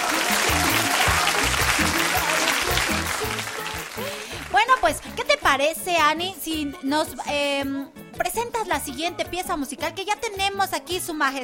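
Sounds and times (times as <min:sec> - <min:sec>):
loud applause: 0:00.0 - 0:05.1
speech: 0:04.9 - 0:11.4.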